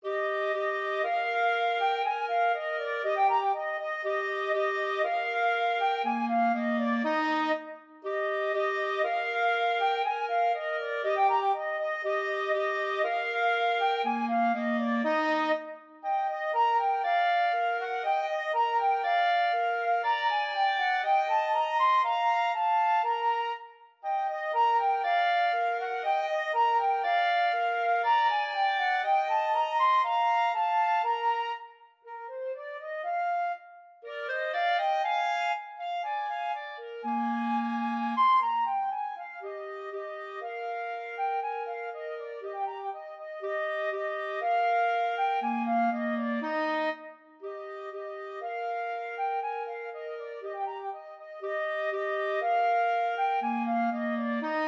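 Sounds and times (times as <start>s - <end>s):
flute and clarinet duet: 0.0s - 54.6s.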